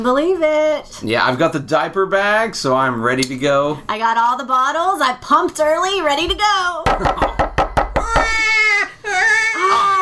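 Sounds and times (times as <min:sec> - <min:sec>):
speech: 0:00.0 - 0:07.5
sharp knocks: 0:06.8 - 0:08.5
baby crying after waking up: 0:08.0 - 0:09.9.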